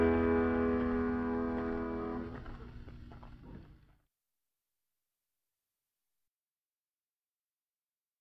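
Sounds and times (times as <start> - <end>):
harpsichord fugue in E major: 0.0 - 2.4.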